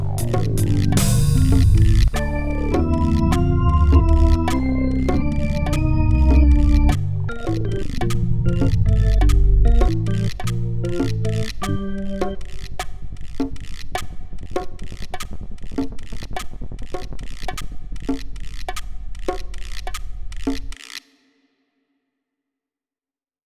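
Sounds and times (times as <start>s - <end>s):
MIDI ditty: 0.0s - 13.8s.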